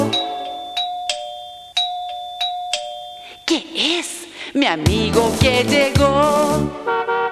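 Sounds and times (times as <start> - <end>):
electronic doorbell chime over a sustained ringing tone: 0.0 - 3.5
speech: 4.5 - 7.2.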